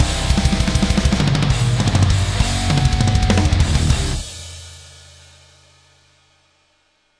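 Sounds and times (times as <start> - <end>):
death metal music: 0.0 - 4.6.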